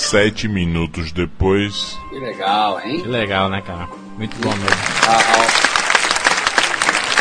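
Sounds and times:
speech: 0:00.1 - 0:05.7
applause: 0:04.3 - 0:07.1.

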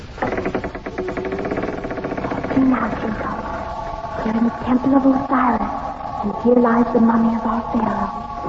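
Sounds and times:
heavy temple door grinding open: 0:00.0 - 0:06.6
speech: 0:02.6 - 0:03.4, 0:04.2 - 0:08.3.

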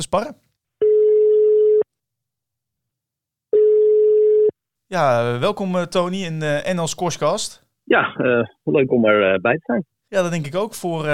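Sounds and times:
speech: 0:00.0 - 0:00.4, 0:04.9 - 0:11.1
telephone tones as a call is placed: 0:00.8 - 0:01.8, 0:03.5 - 0:04.5.

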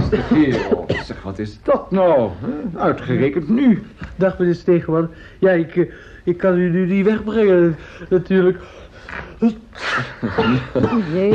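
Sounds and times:
laughter: 0:00.0 - 0:00.9, 0:09.8 - 0:11.3
person sneezing: 0:00.0 - 0:01.1, 0:09.8 - 0:11.3
speech: 0:00.1 - 0:11.3.

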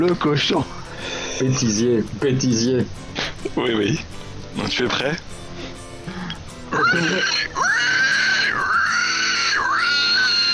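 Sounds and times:
speech: 0:00.0 - 0:05.4, 0:06.7 - 0:07.9
person imitating a sow with high-pitched squealing wails: 0:06.7 - 0:10.5.

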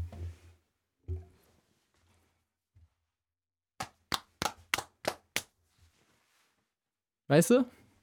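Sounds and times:
hand slapping own buttocks: 0:03.8 - 0:05.5
speech: 0:07.3 - 0:07.8.

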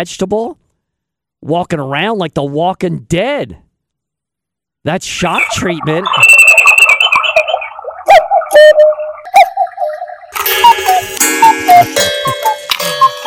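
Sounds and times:
speech: 0:00.0 - 0:00.6, 0:01.4 - 0:03.6, 0:04.8 - 0:06.4
cuckoo clock ticking: 0:05.4 - 0:13.2
cuckoo clock chiming with cuckoo calls: 0:10.4 - 0:13.2.

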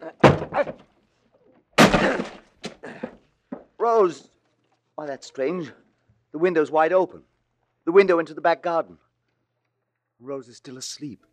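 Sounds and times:
door being broken down: 0:00.0 - 0:00.9, 0:01.8 - 0:03.7
speech: 0:03.8 - 0:04.3, 0:05.0 - 0:07.3, 0:07.9 - 0:09.0, 0:10.2 - 0:11.3.

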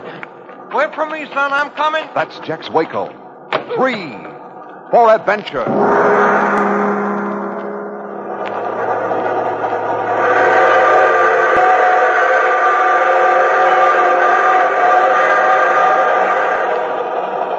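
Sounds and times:
speech: 0:00.7 - 0:04.3, 0:04.9 - 0:06.9
freight train rumbling and rattling: 0:05.7 - 0:17.5.

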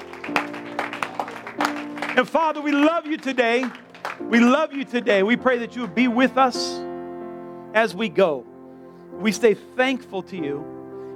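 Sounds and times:
audience clapping: 0:00.0 - 0:06.3
speech: 0:02.2 - 0:06.8, 0:07.7 - 0:08.5, 0:09.1 - 0:10.8.

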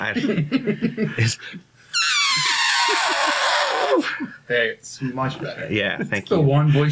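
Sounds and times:
speech: 0:00.0 - 0:03.0, 0:03.9 - 0:06.9
person imitating an elephant trumpeting: 0:02.0 - 0:04.1.

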